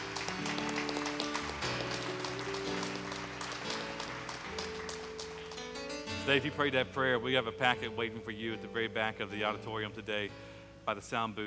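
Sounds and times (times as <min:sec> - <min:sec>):
audience clapping: 0:00.0 - 0:06.6
sustained keyboard chords: 0:00.0 - 0:11.4
speech: 0:06.3 - 0:11.4.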